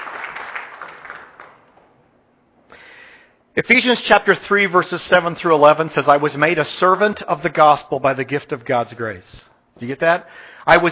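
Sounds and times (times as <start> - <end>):
church audience applause: 0.0 - 1.9
speech: 3.6 - 10.8.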